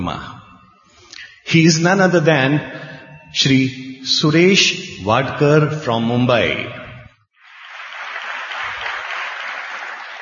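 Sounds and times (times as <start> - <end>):
speech: 0.0 - 0.4, 1.5 - 6.8
audience applause: 7.4 - 10.2.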